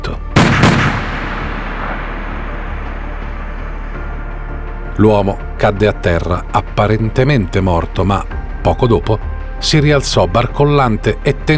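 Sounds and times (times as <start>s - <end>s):
pistol gunshot: 0.4s - 2.9s
speech: 5.0s - 11.5s.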